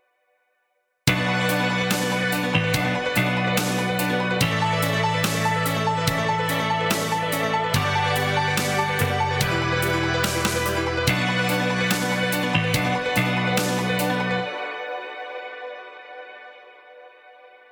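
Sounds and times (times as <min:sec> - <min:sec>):
guitar chord inversion exercises backing track: 0:01.1 - 0:14.7.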